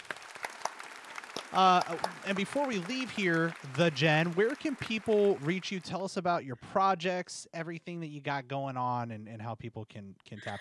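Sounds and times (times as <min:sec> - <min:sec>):
people clapping: 0:00.0 - 0:06.2
speech: 0:01.5 - 0:10.5.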